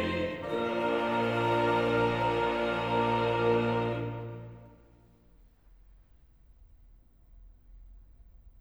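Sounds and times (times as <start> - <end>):
choir singing: 0.0 - 5.0.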